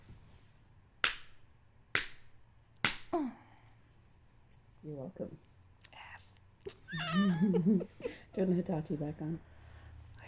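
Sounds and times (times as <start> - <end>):
spanks on bare skin: 1.0 - 3.2
speech: 4.8 - 5.5, 6.6 - 9.5
laughter: 6.8 - 8.3.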